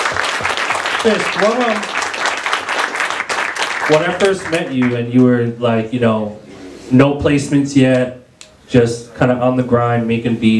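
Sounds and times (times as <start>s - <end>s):
applause: 0.0s - 5.1s
speech: 1.0s - 1.9s, 3.8s - 10.5s.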